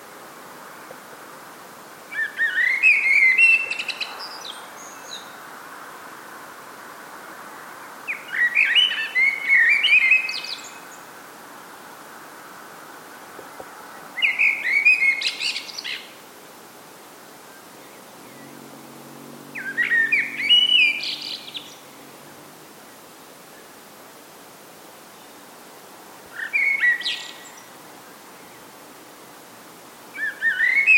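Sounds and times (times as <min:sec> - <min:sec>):
blackbird singing at dawn: 0:02.1 - 0:05.4, 0:08.1 - 0:10.9, 0:14.2 - 0:16.1, 0:19.4 - 0:22.4, 0:26.4 - 0:27.7, 0:30.2 - 0:30.9.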